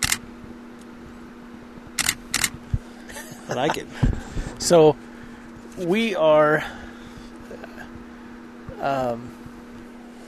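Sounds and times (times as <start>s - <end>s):
camera shutter clicks: 0.0s - 0.2s, 2.0s - 2.5s
laughter: 3.1s - 4.1s
speech: 3.5s - 5.1s, 5.8s - 6.8s, 8.8s - 9.4s.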